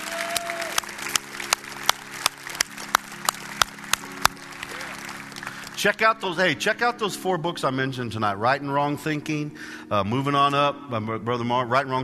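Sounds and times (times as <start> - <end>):
audience applause: 0.0 - 6.1
speech: 5.8 - 12.0.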